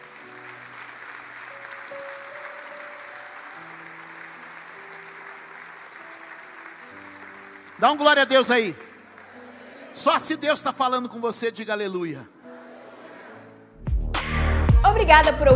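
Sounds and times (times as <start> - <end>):
audience applauding: 0.0 - 10.6
speech: 7.8 - 8.9, 10.0 - 12.3, 15.0 - 15.5.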